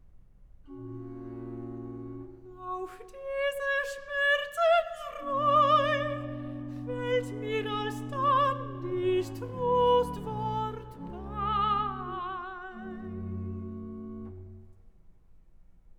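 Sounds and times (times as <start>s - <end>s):
person singing recitative: 2.5s - 13.7s.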